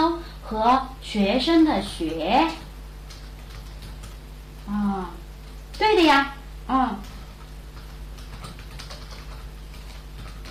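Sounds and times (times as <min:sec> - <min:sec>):
speech: 0:00.5 - 0:02.6, 0:04.7 - 0:05.2, 0:05.8 - 0:07.1
typing on a computer keyboard: 0:01.8 - 0:04.2, 0:07.0 - 0:10.4.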